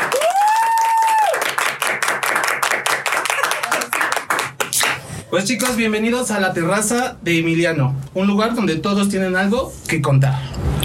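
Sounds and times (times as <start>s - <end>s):
crowd clapping: 0.0s - 5.1s
speech: 5.3s - 10.5s.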